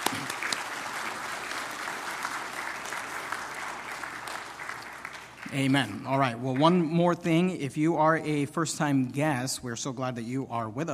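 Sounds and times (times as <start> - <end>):
audience clapping: 0.0 - 7.0
speech: 5.5 - 10.9.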